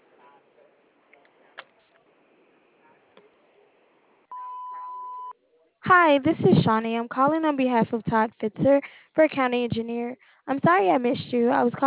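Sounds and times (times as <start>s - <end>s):
answering machine beep: 4.3s - 5.3s
speech: 5.9s - 11.8s.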